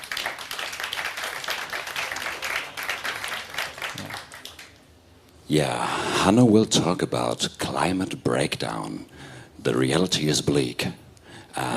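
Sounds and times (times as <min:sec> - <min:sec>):
audience applause: 0:00.0 - 0:04.8
speech: 0:05.5 - 0:11.0, 0:11.6 - 0:11.7.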